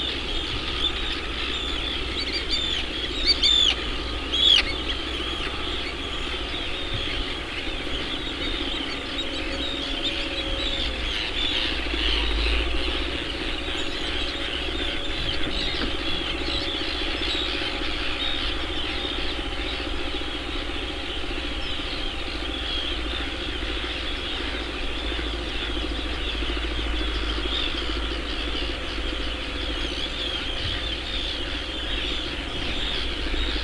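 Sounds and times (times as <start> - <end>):
birds at Arnarstapi: 0.0 - 33.6.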